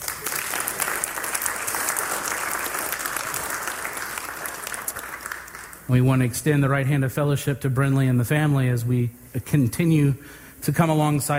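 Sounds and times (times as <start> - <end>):
audience clapping: 0.0 - 6.1
speech: 5.9 - 11.3.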